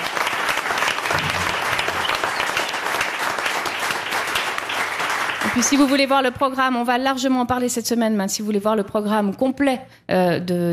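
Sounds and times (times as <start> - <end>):
audience applause: 0.0 - 6.0
speech: 5.6 - 10.7.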